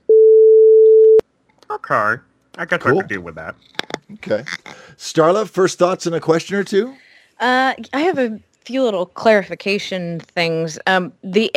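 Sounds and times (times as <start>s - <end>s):
censor beep sound effect: 0.1s - 1.2s
speech: 1.7s - 11.5s.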